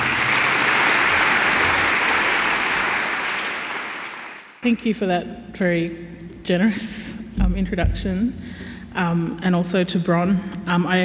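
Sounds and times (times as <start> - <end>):
crowd applause welcoming a speaker: 0.0 - 4.6
speech: 4.6 - 11.0.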